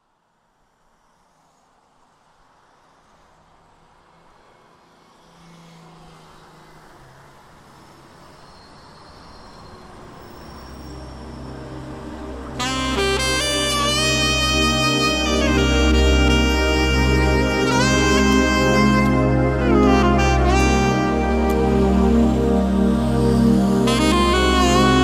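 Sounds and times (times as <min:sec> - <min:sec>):
saxophone: 0:10.9 - 0:25.0.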